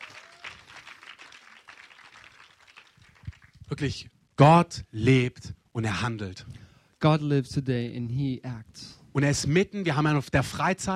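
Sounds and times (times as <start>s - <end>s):
audience applause: 0.0s - 3.6s
speech: 3.7s - 10.9s.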